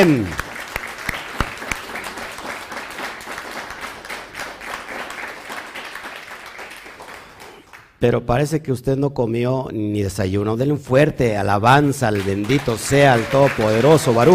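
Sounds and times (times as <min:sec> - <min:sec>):
speech: 0:00.0 - 0:00.4, 0:08.0 - 0:14.3
audience applause: 0:00.0 - 0:07.8, 0:12.2 - 0:14.3.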